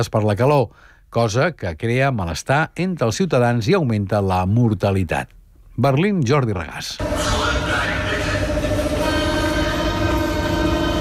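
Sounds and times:
speech: 0.0 - 8.0
Berlin subway train running with windows open: 7.0 - 10.9.

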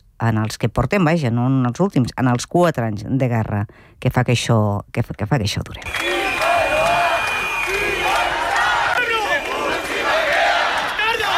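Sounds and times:
speech: 0.2 - 6.5
crowd of protesters in Bilbao: 5.8 - 11.3.

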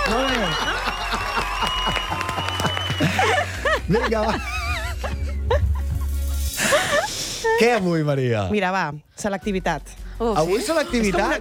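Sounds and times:
applause: 0.0 - 3.6
laughter: 0.0 - 7.8, 10.4 - 11.3
speech: 3.9 - 4.6, 7.4 - 11.3.

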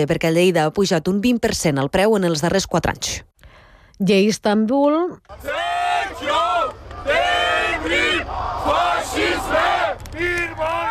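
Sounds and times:
speech: 0.0 - 3.3, 4.0 - 6.3
May Day protest crowd chanting: 5.3 - 10.9.

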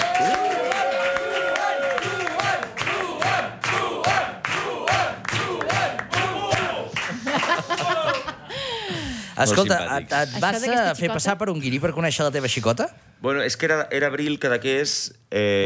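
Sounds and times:
audience applauding and cheering: 0.0 - 8.5
laughter: 6.8 - 9.2
speech: 9.4 - 15.6.

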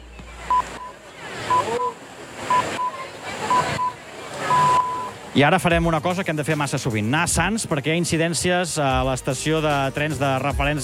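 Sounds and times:
radio hourly time signal pips: 0.5 - 5.2
speech: 5.4 - 10.8.

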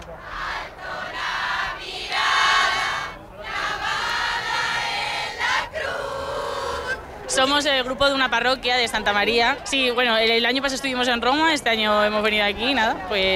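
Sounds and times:
crowd of faithful singing hymns outside cathedral: 0.0 - 7.2
speech: 7.4 - 13.3.

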